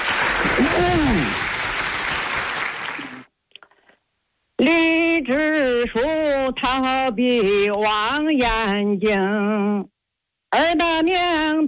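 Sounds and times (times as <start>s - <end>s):
audience applause: 0.0s - 3.3s
vocal cheer: 0.4s - 1.5s
speech: 5.3s - 9.9s, 10.5s - 11.6s.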